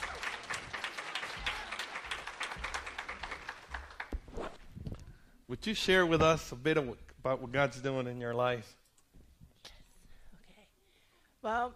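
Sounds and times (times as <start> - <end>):
audience clapping hands: 0.0 - 4.4
speech: 5.5 - 8.8.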